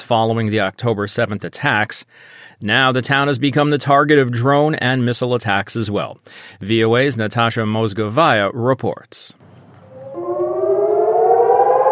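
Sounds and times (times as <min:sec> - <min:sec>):
speech: 0:00.1 - 0:09.5
civil defense rocket attack warning siren wailing in Eilat, southern Israel: 0:09.8 - 0:11.8.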